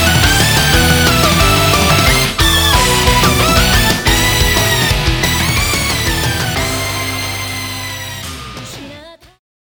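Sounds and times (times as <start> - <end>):
pop rock music: 0.0 - 9.3.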